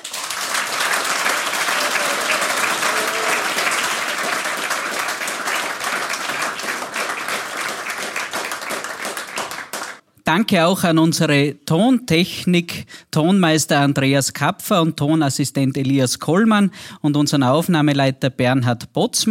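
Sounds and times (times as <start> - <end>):
audience applause: 0.0 - 10.0
speech: 10.3 - 19.2.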